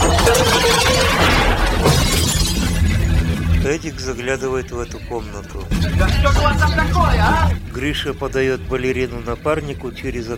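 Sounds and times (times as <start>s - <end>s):
furniture smashing as a man falls onto it: 0.0s - 3.0s
speech: 3.7s - 10.3s.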